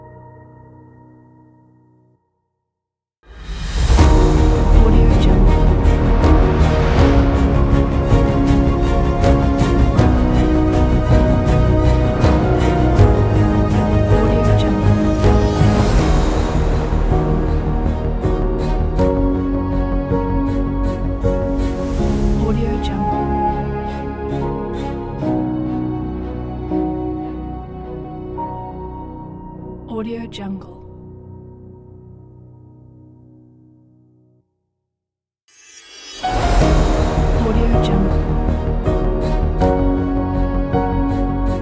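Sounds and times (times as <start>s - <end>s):
cinematic grand epic ident music: 3.3s - 29.9s, 35.8s - 41.6s.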